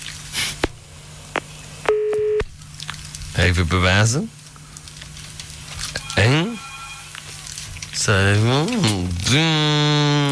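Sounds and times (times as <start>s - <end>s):
steady electronic telephone dialing tone: 1.9s - 2.4s, 6.0s - 7.3s
speech: 3.4s - 4.4s, 8.1s - 10.2s.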